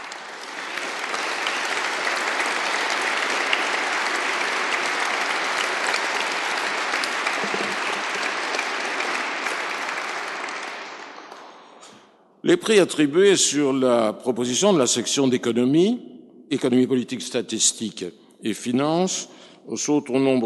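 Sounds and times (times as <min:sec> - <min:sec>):
large audience applause at award ceremony: 0:00.0 - 0:11.8
speech: 0:12.5 - 0:20.4.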